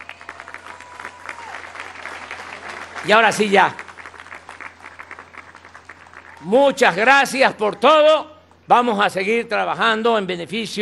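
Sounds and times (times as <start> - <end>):
audience applause: 0.0 - 7.1
speech: 3.0 - 3.8, 6.4 - 10.8.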